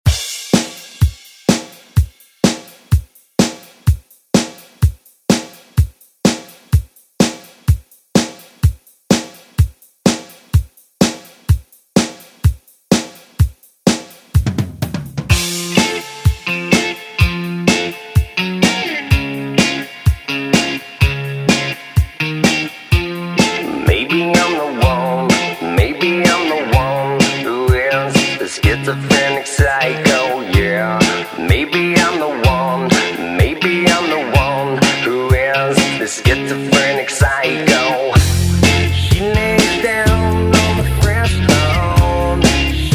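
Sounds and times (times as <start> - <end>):
drum: 0.0 - 42.9.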